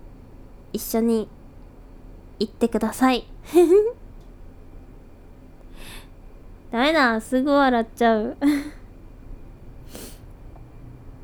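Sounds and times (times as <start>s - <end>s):
speech: 0.7s - 1.4s, 2.4s - 4.0s, 6.7s - 8.8s
sniffle from a runny nose caused by the cold: 9.8s - 10.3s.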